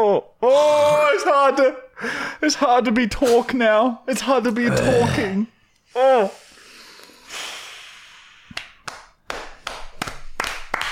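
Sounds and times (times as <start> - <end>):
speech: 0.0 - 6.4
person clapping hands: 8.5 - 10.8.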